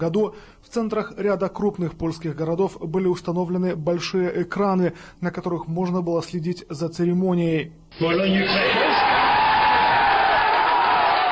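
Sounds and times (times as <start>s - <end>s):
speech: 0.0s - 9.2s
football fans cheering: 8.2s - 11.3s.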